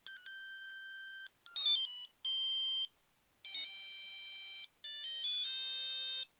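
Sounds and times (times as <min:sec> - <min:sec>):
phone ringtone: 0:00.0 - 0:02.9, 0:03.5 - 0:06.3.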